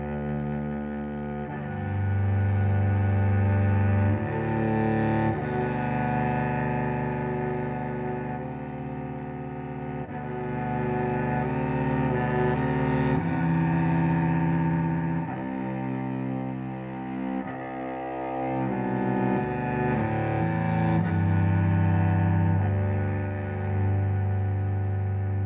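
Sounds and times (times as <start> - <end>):
cello solo: 0.0 - 25.4.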